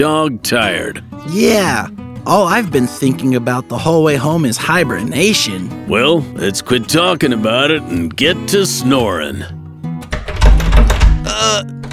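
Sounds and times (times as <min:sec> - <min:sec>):
speech: 0:00.0 - 0:09.6, 0:10.8 - 0:11.8
locked door thudding and rattling in its frame as it is pushed: 0:10.0 - 0:11.9
person grunting with strain: 0:11.3 - 0:11.7.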